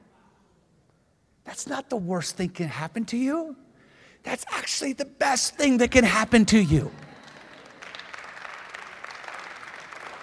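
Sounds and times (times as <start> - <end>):
speech: 1.6 - 3.6, 4.2 - 7.1
audience clapping: 6.8 - 10.2.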